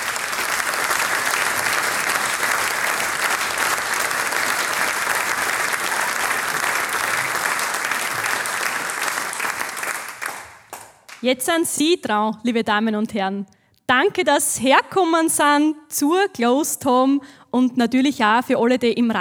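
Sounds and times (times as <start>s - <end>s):
audience applause: 0.0s - 11.2s
speech: 11.2s - 19.1s.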